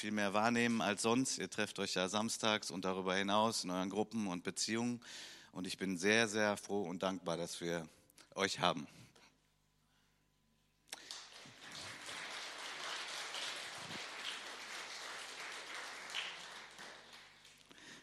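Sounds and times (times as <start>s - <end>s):
speech: 0.0s - 9.0s
audience clapping: 10.9s - 18.0s.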